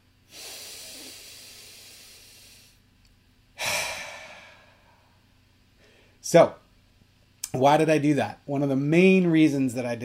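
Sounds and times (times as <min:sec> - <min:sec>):
deep breath: 0:00.3 - 0:02.8, 0:03.6 - 0:05.2, 0:05.8 - 0:06.2
speech: 0:06.3 - 0:06.6, 0:07.6 - 0:10.0.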